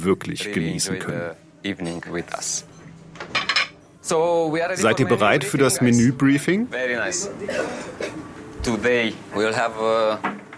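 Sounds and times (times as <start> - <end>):
speech: 0.0 - 3.4, 4.0 - 10.4
special plates and cutlery clinking as a table is set: 1.7 - 3.8.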